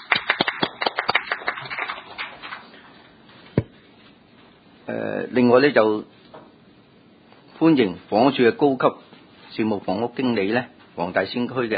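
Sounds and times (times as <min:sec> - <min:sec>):
audience applause: 0:00.0 - 0:02.8
speech: 0:04.9 - 0:06.2, 0:07.6 - 0:11.7.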